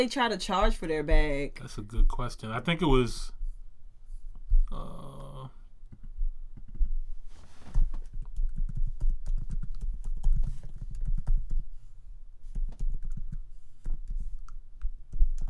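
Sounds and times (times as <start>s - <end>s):
speech: 0.0s - 3.4s
typing on a computer keyboard: 8.0s - 11.6s, 12.5s - 15.4s.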